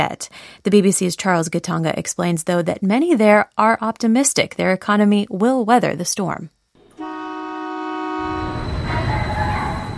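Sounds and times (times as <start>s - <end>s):
speech: 0.0s - 6.6s
light rail train horn: 6.8s - 9.9s
light rail train running through city, rumbling and rattling: 8.2s - 9.9s.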